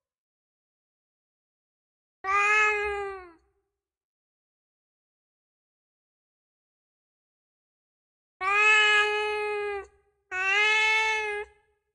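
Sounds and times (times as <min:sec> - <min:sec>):
cat meowing: 0:02.3 - 0:03.4, 0:08.4 - 0:11.5.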